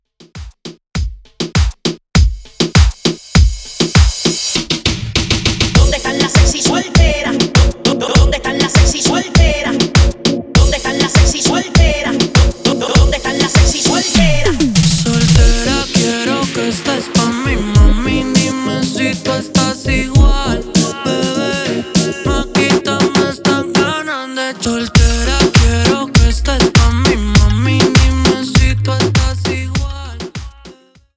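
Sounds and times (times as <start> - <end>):
remix intro and outro beat at 100 BPM: 0.2 - 24.1, 24.7 - 31.0.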